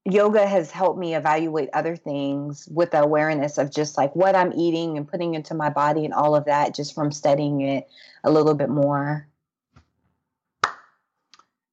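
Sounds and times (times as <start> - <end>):
speech: 0.1 - 9.3
slow clap: 10.6 - 11.5.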